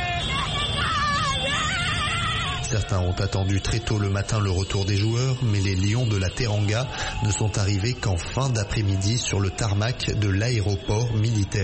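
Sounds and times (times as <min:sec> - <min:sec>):
crowd cheering and shouting with joy: 0:00.0 - 0:11.6
high wavering cries: 0:00.0 - 0:11.6
speech: 0:02.7 - 0:11.6.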